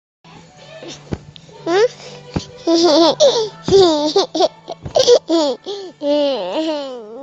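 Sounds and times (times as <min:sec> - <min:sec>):
baby laughing: 0:02.6 - 0:07.1.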